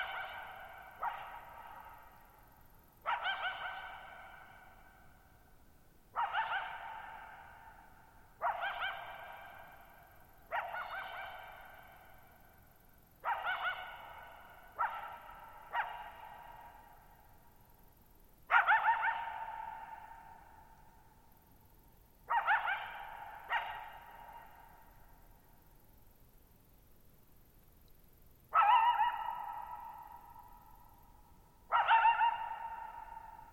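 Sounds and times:
coyote yelping barks: 0.0s - 2.4s, 3.0s - 5.1s, 6.1s - 12.5s, 13.2s - 17.3s, 18.5s - 20.8s, 22.3s - 25.2s, 28.5s - 31.0s, 31.7s - 33.5s.

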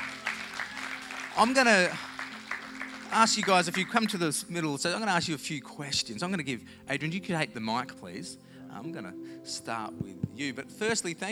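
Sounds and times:
audience applause: 0.0s - 4.4s
speech: 1.4s - 2.1s, 3.1s - 11.3s.

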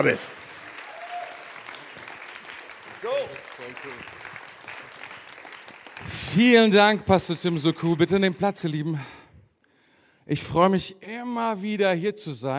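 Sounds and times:
speech: 0.0s - 0.5s, 3.0s - 4.2s, 6.0s - 9.2s, 10.3s - 12.5s
audience applause: 0.0s - 8.7s.

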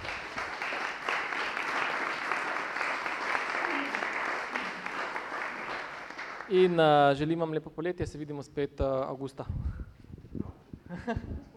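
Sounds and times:
audience applause: 0.0s - 6.7s
speech: 6.5s - 9.8s, 11.0s - 11.5s
laughter: 10.9s - 11.5s.

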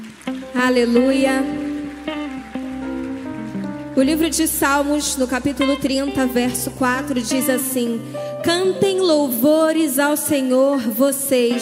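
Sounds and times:
audience clapping hands in praise: 0.0s - 7.5s
speech: 0.6s - 1.6s, 4.0s - 11.6s.

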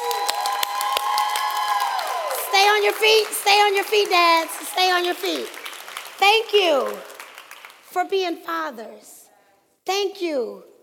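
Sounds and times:
audience applauding: 0.0s - 7.9s
speech: 2.7s - 5.6s, 6.2s - 7.1s, 7.9s - 9.2s, 9.8s - 10.7s.

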